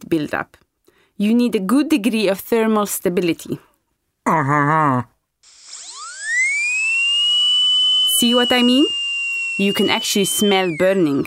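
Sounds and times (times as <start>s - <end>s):
speech: 0.1s - 0.6s, 1.2s - 5.6s, 8.2s - 9.0s, 9.6s - 11.2s
high-speed dental drill drilling into tooth: 5.4s - 11.2s.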